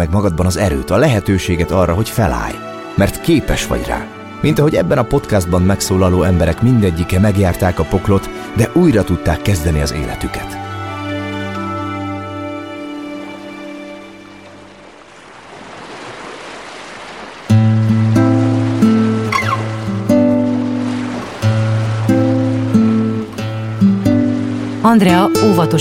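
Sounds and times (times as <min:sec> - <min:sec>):
speech: 0:00.0 - 0:10.7, 0:25.0 - 0:25.7
sustained tonal music: 0:00.0 - 0:15.0, 0:17.5 - 0:25.7
sea waves at a bay: 0:12.6 - 0:25.7.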